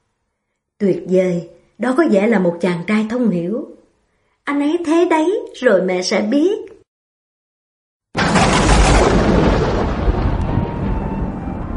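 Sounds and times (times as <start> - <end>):
speech: 0.8 - 3.8, 4.5 - 6.8
rolling thunder: 8.2 - 11.7.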